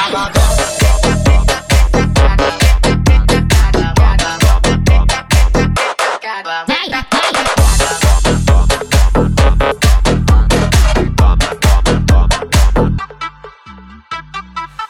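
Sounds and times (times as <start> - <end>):
pancadão funk beat: 0.2 - 5.8, 7.6 - 12.9.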